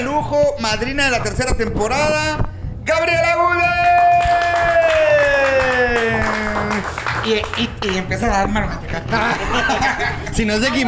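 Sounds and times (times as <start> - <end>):
speech: 0.0 - 5.0, 6.8 - 10.8
audience cheering: 3.7 - 7.2
audience applause: 4.2 - 7.8
laughter: 9.0 - 10.8.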